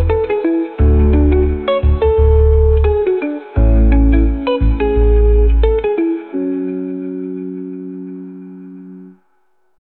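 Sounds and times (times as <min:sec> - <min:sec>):
cozy lofi music: 0:00.0 - 0:09.4.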